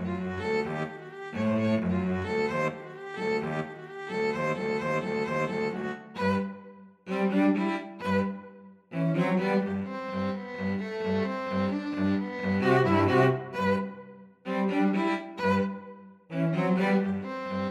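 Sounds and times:
two violins and cello playing a ballet dance piece: 0.0 - 6.5, 7.1 - 8.3, 8.9 - 13.9, 14.5 - 17.6.

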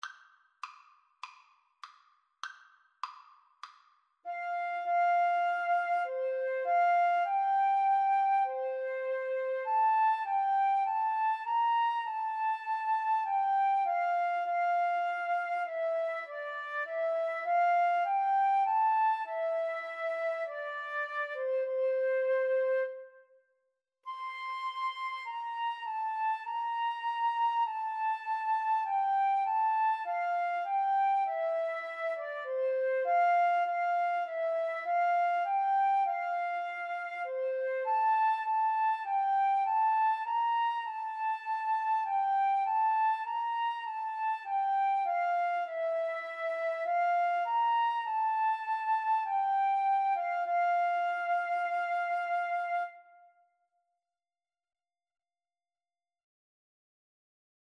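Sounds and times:
flute and clarinet duet: 4.3 - 23.3, 24.1 - 53.3.

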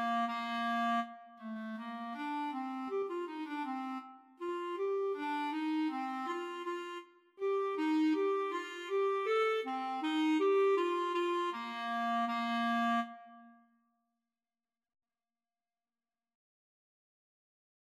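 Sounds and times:
clarinet duet: 0.0 - 13.6.

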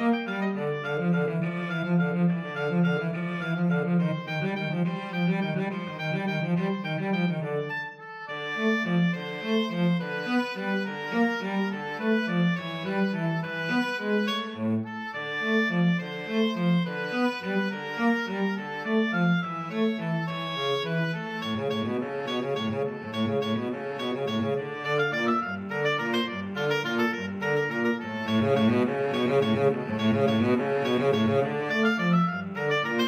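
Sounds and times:
cello: 0.0 - 33.0
oboe: 0.0 - 33.0.

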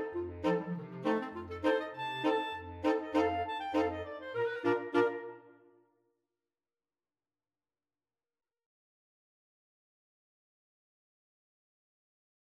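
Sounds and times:
clarinet polka with flexible mixed ensemble of six players: 0.0 - 5.5.

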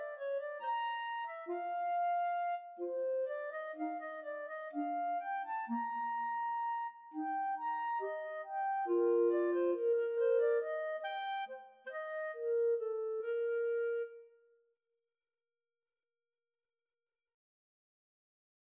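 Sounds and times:
clarinet trio: 0.0 - 14.4.

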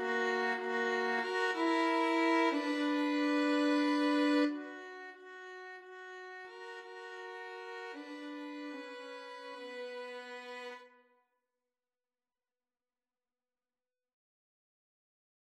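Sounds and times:
violin trio: 0.0 - 10.9.

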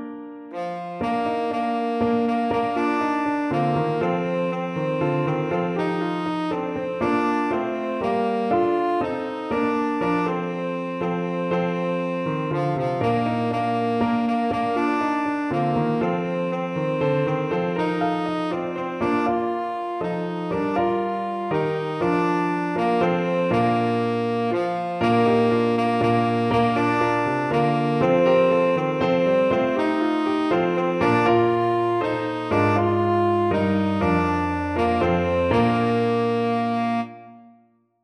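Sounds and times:
tenor saxophone: 0.5 - 37.7.

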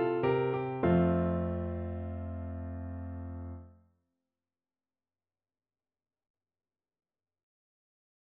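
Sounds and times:
piano minuet: 0.0 - 3.7.

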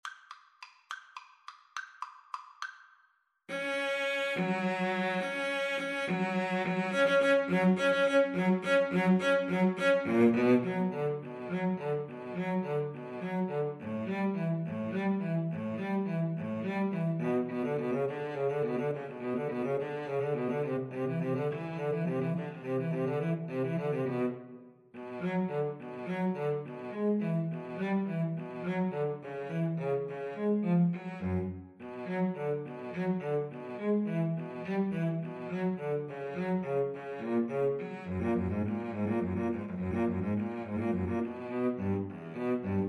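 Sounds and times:
cello: 3.5 - 42.8
violin: 3.5 - 42.8.

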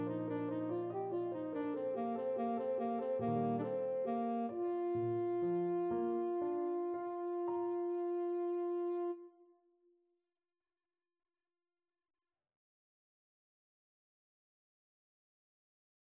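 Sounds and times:
tenor saxophone: 0.0 - 9.4.

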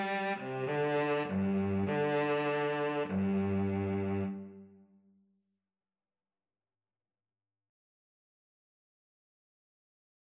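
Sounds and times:
violin and cello duet playing an overture: 0.0 - 4.6.

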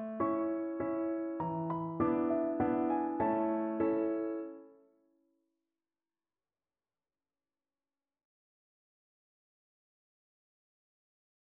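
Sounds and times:
piano waltzes: 0.0 - 4.8.

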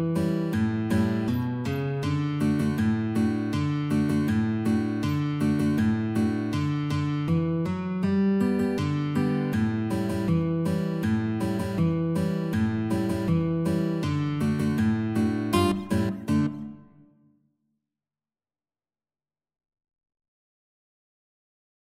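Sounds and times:
guitar duet: 0.0 - 17.1.

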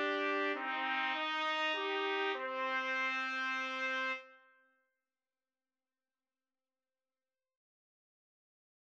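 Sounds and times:
trumpet trio playing: 0.0 - 4.3.

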